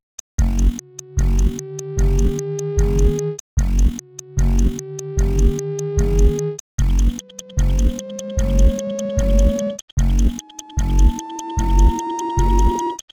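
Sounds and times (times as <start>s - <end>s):
sine wave tone: 0.4s - 13.0s.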